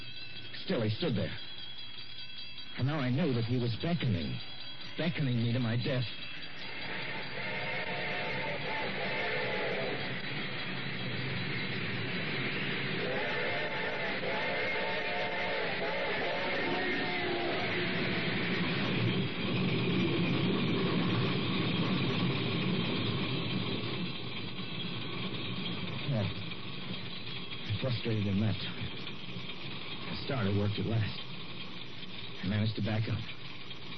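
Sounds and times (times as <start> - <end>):
train approaching and passing: 0.0 - 33.9
speech: 0.7 - 1.5, 2.8 - 6.3, 30.5 - 31.2, 32.5 - 33.4
train whistle: 6.2 - 26.6.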